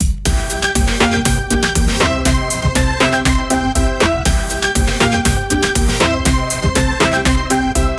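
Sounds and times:
hip hop dance music: 0.0s - 7.9s.

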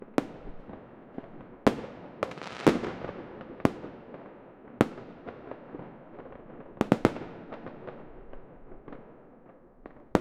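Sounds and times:
fireworks: 0.0s - 10.1s.

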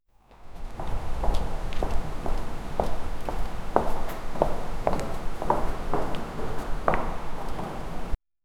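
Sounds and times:
person walking: 0.2s - 8.2s.

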